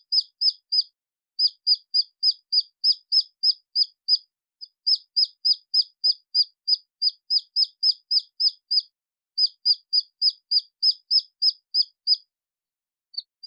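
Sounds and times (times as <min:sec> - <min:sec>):
red junglefowl chick peeping: 0:00.0 - 0:12.2, 0:13.2 - 0:13.4.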